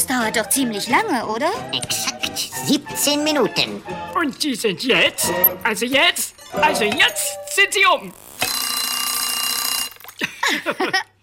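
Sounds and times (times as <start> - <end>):
speech: 0.1 - 8.2, 10.5 - 11.1
alarm clock ringing: 6.5 - 10.0.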